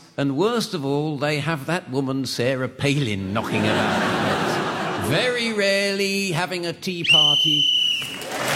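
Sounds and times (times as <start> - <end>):
speech: 0.2 - 4.4, 5.1 - 8.4
laughter: 3.4 - 5.6
whistle signalling time is up: 7.0 - 8.3.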